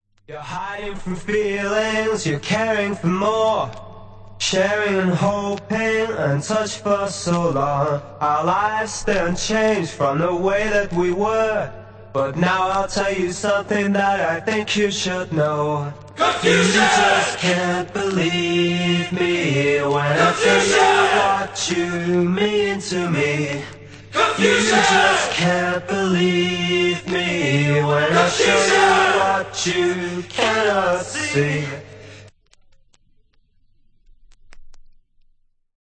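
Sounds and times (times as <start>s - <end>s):
a cappella singing: 0.3s - 3.8s, 4.4s - 32.2s.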